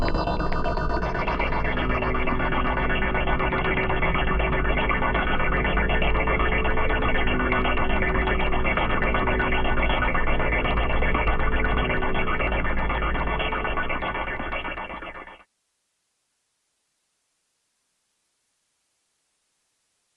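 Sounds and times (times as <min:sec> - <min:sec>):
fluttering drone: 0:00.0 - 0:15.3.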